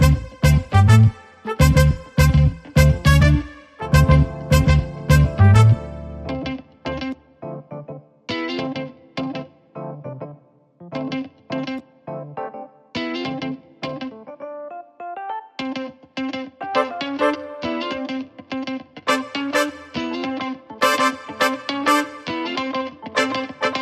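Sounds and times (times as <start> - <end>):
brass instruments: 0.0 - 6.3, 16.8 - 17.7, 19.1 - 20.2, 20.8 - 22.6, 23.2 - 23.8
guitar: 0.0 - 14.6, 15.5 - 23.8
keyboard: 0.0 - 23.8.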